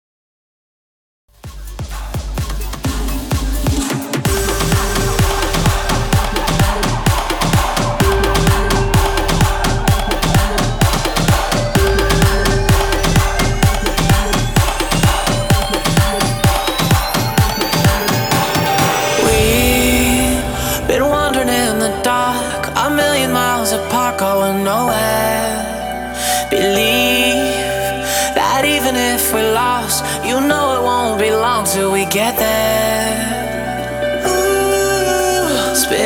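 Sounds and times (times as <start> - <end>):
progressive house music at 128 BPM: 1.4 - 36.0.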